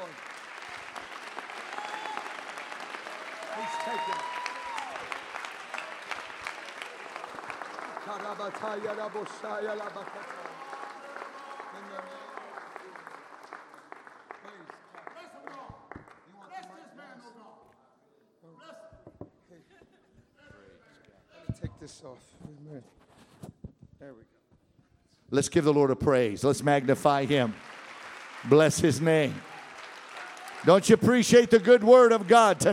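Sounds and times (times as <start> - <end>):
hands clapping: 0.0 - 16.8, 26.4 - 32.7
speech: 8.4 - 10.5, 25.3 - 27.6, 28.4 - 29.5, 30.6 - 32.7.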